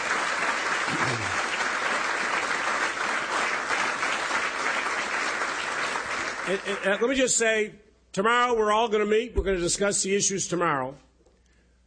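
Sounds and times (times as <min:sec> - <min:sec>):
round of applause: 0:00.0 - 0:07.1
speech: 0:06.5 - 0:11.1.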